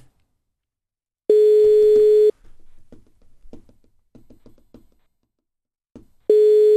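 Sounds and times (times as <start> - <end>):
telephone ringing tone during call: 1.3 - 2.3, 6.3 - 6.7.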